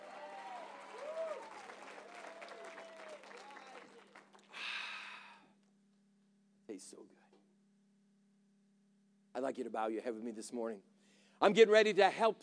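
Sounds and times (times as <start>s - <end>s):
audience applause: 0.0s - 4.9s
speech: 6.8s - 7.2s, 9.4s - 12.4s.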